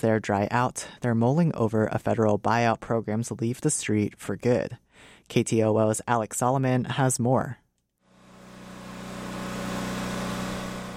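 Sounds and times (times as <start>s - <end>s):
speech: 0.0s - 7.6s
loud generator pumping water from a house: 8.1s - 10.9s.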